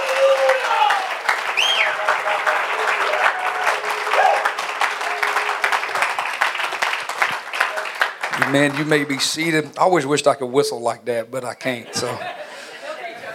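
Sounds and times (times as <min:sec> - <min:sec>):
audience clapping hands: 0:00.0 - 0:10.0
speech: 0:08.5 - 0:12.4
laughter: 0:11.4 - 0:13.3.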